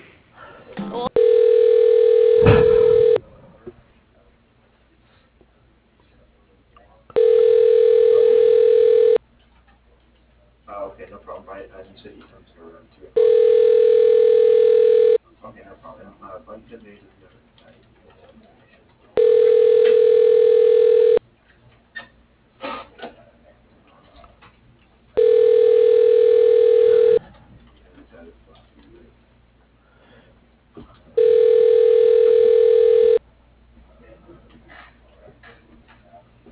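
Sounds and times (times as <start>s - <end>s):
telephone ringback tone while a call is transferred: 1.2s - 3.2s, 7.2s - 9.2s, 13.2s - 15.2s, 19.2s - 21.2s, 25.2s - 27.2s, 31.2s - 33.2s.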